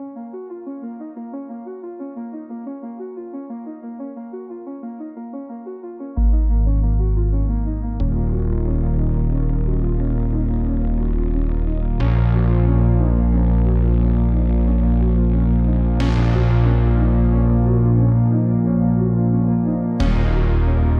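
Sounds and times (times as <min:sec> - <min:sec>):
slow haunting retrowave soundtrack using 1980s synthesizers: 0:06.2 - 0:20.9.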